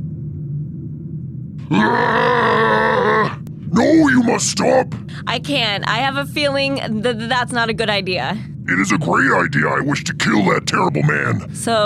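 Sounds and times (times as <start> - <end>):
low rumbling creature growl: 1.6 - 4.9, 8.7 - 11.5
speech: 1.7 - 2.4, 3.8 - 11.8
creature screaming in frustration: 1.7 - 4.8.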